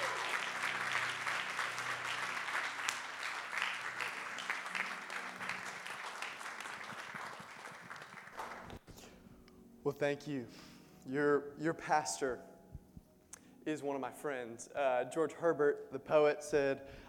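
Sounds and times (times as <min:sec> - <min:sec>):
congregation clapping at a morning church service welcoming a guest speaker: 0:00.0 - 0:08.8
speech: 0:09.9 - 0:12.5, 0:13.6 - 0:17.0.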